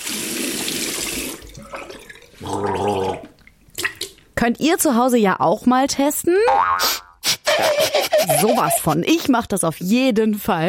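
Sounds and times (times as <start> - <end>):
tap water running while finishing brushing teeth: 0.0 - 4.2
buzzing tonal gurgle: 1.6 - 3.4
speech: 4.4 - 7.0, 7.6 - 10.6
laughter: 7.5 - 9.0.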